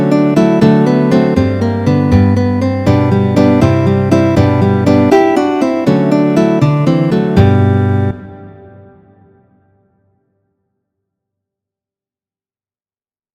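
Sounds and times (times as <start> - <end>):
contradanza dance music: 0.4 - 8.3.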